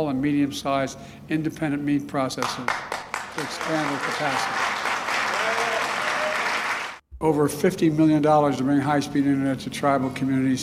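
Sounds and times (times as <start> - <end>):
speech: 0.0 - 4.7, 7.2 - 10.6
audience applause: 2.4 - 7.0
audience cheering: 2.9 - 7.0.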